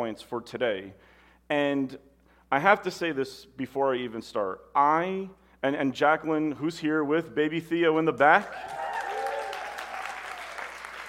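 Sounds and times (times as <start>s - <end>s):
speech: 0.0s - 8.8s
audience clapping: 8.4s - 11.0s.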